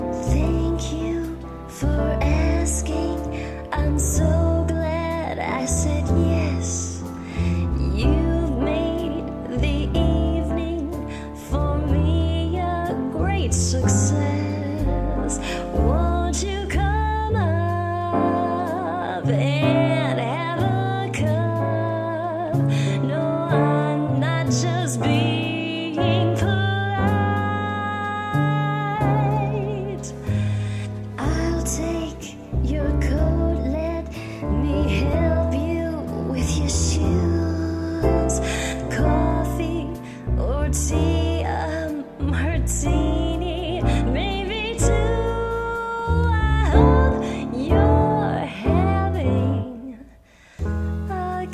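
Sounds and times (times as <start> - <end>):
person singing jazz: 0.1 - 51.5.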